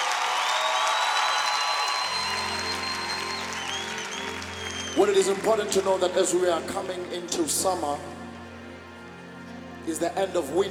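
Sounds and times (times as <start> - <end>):
audience applause: 0.0 - 6.6
speech: 5.0 - 8.2, 9.9 - 10.7.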